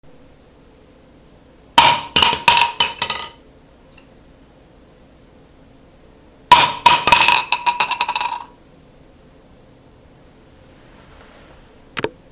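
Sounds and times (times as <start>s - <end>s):
shotgun shells dropping: 2.2s - 3.4s, 6.9s - 8.5s.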